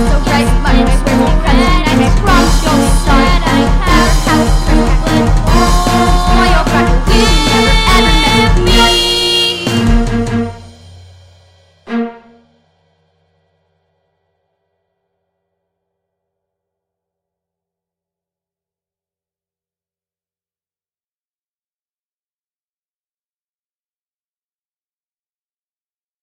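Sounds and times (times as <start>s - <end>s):
vocals: 0.0s - 10.2s.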